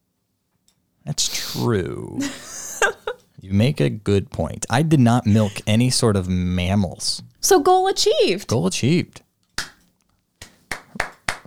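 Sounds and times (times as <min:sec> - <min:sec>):
speech: 0:01.1 - 0:09.2
round of applause: 0:10.4 - 0:11.4.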